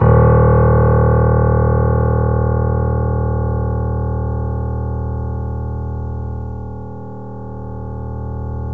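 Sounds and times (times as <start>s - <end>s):
D sharp piano note: 0.0s - 8.7s.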